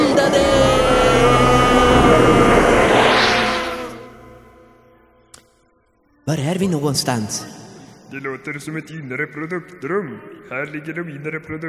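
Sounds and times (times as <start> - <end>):
transformation machine effect of turning gears and a shaking room: 0.4 - 4.8
speech: 6.3 - 11.6.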